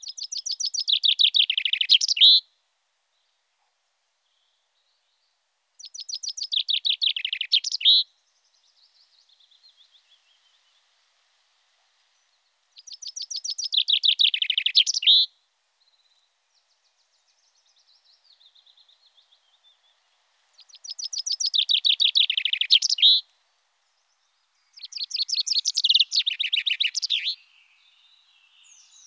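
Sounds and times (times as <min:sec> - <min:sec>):
common chaffinch song: 0:00.0 - 0:29.0.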